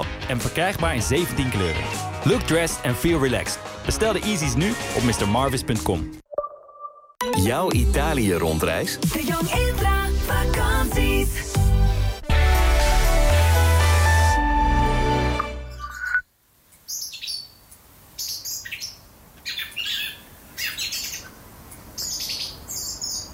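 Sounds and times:
music: 0.0 - 6.2, 7.2 - 15.8
speech: 0.0 - 6.2, 7.4 - 9.9
quiet hiss: 16.3 - 23.3
blackbird singing its subsong softly in the bushes: 16.9 - 17.6, 18.2 - 21.4, 22.0 - 23.3.

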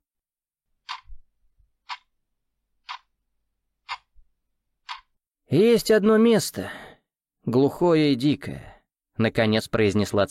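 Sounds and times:
wall clock ticking: 0.8 - 1.2, 1.8 - 2.2, 2.8 - 3.2, 3.8 - 4.2, 4.8 - 5.2
speech: 5.5 - 6.8, 7.4 - 10.2.

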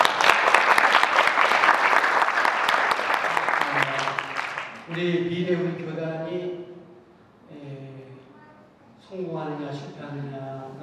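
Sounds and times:
audience at a Korean church seminary gathering clapping: 0.0 - 5.0
speech: 5.0 - 6.2.

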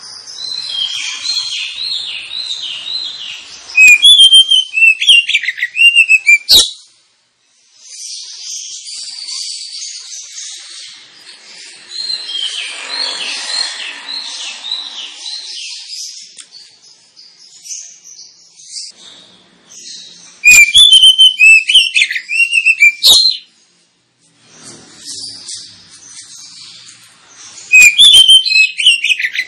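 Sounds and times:
Oriental magpie-robin song: 0.0 - 6.9, 20.0 - 23.5, 27.6 - 29.4.

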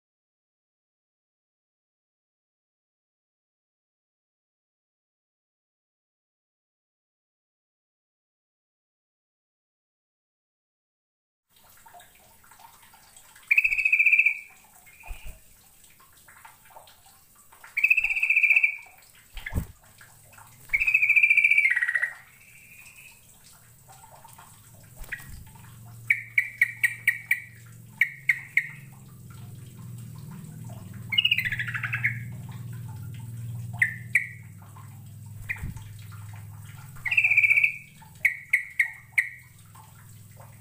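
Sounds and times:
bird song: 13.5 - 15.4, 17.8 - 19.6, 20.7 - 23.2, 25.0 - 29.0, 31.0 - 32.4, 33.7 - 34.5, 35.4 - 36.0, 37.0 - 39.5
low droning hum: 22.2 - 38.2.

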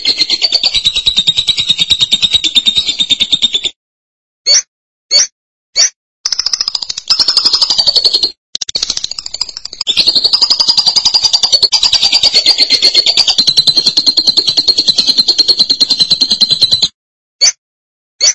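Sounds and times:
Lovebird song: 0.0 - 3.7, 6.3 - 16.9.

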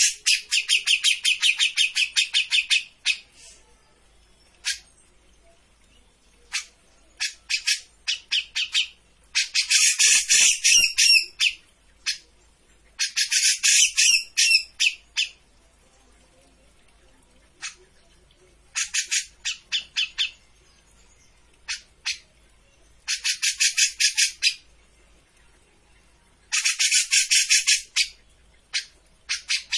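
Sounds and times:
Grey-cheeked bulbul chattering: 0.0 - 3.3, 6.4 - 12.3, 13.0 - 15.4, 17.5 - 18.0, 18.6 - 20.4, 21.6 - 22.3, 23.0 - 24.7, 26.5 - 29.7.

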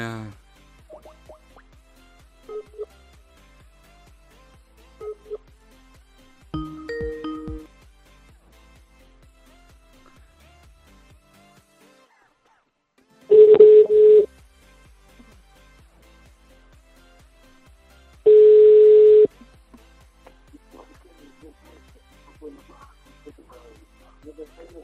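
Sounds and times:
telephone tones while a number is dialled: 2.5 - 2.9, 13.3 - 14.3, 18.3 - 19.3.

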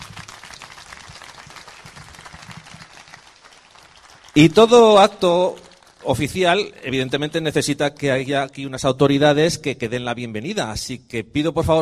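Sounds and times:
crowd at an awards gala applauding: 0.0 - 6.3
speech: 4.4 - 11.8.

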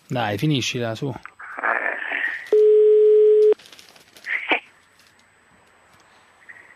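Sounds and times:
speech: 0.1 - 1.3
telephone ringing heard down the line: 2.5 - 3.6.

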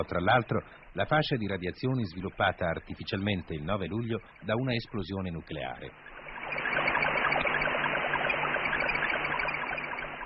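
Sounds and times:
speech: 0.0 - 6.7
faint pulsing tones: 0.0 - 10.2
hissing crackling radio noise from the Explorer 15 satellite received at Bochum: 0.0 - 10.2.

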